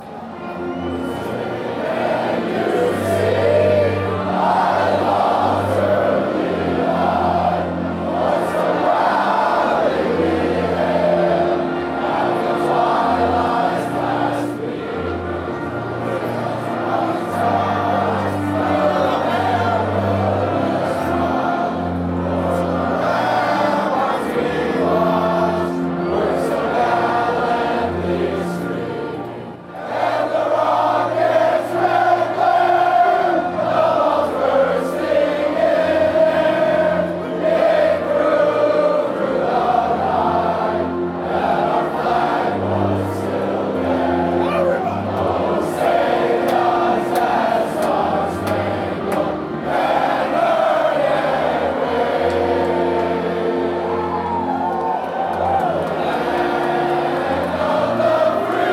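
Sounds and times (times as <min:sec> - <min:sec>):
football song: 0:00.0 - 0:58.7.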